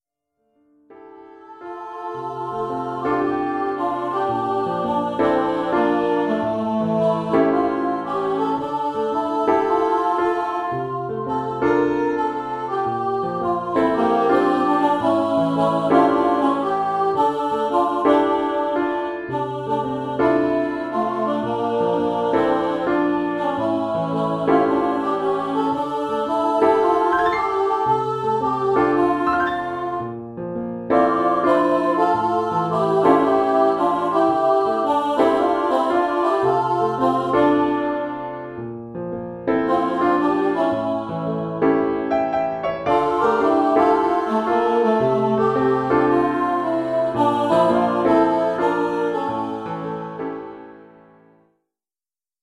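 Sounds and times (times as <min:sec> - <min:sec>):
vocal duet over a PA: 0:01.4 - 0:30.1, 0:30.9 - 0:38.6, 0:39.5 - 0:50.8.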